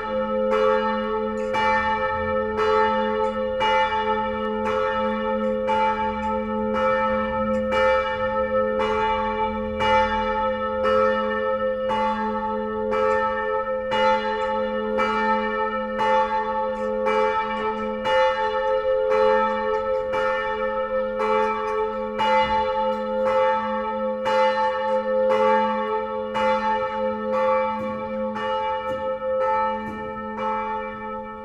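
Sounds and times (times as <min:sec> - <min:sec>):
bells rung by a bell ringer: 0:00.0 - 0:31.4.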